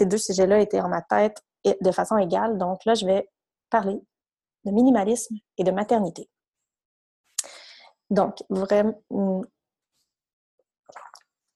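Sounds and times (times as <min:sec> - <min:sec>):
speech: 0:00.0 - 0:06.4, 0:07.4 - 0:09.6
person taking a small sip of water: 0:10.9 - 0:11.3.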